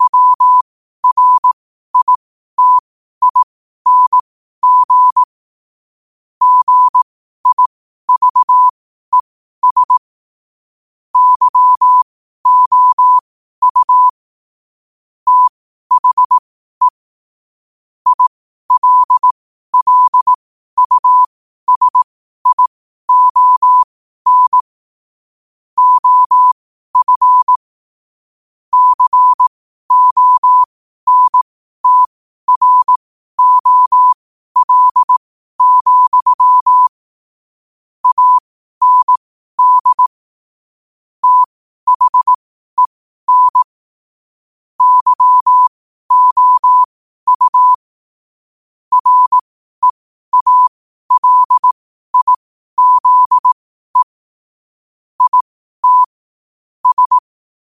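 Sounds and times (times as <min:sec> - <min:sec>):
morse code at 5 wpm: 0:00.0 - 0:05.3, 0:06.4 - 0:10.1, 0:11.2 - 0:14.2, 0:15.3 - 0:17.0, 0:18.1 - 0:24.7, 0:25.8 - 0:27.6, 0:28.7 - 0:37.0, 0:38.0 - 0:40.2, 0:41.2 - 0:43.8, 0:44.8 - 0:47.9, 0:48.9 - 0:54.2, 0:55.2 - 0:56.2, 0:56.8 - 0:57.3.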